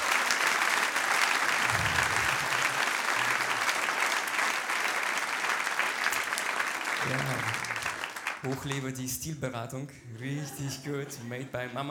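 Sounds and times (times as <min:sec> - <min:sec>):
audience applause: 0:00.0 - 0:08.8
speech: 0:08.4 - 0:11.9.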